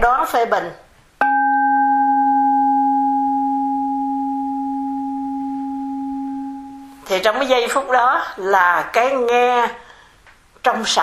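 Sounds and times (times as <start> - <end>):
speech: 0.2 - 0.8, 7.1 - 9.8, 10.6 - 11.0
meditation bell ringing: 1.2 - 7.0.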